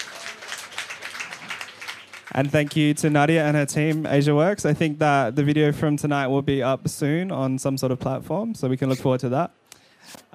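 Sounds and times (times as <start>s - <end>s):
audience applause: 0.0s - 3.2s
speech: 2.4s - 9.6s.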